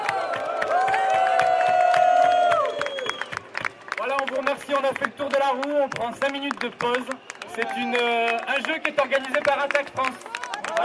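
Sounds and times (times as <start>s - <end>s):
sustained high whoop: 0.0s - 3.3s
crowd clapping: 0.0s - 10.8s
speech: 4.8s - 10.8s.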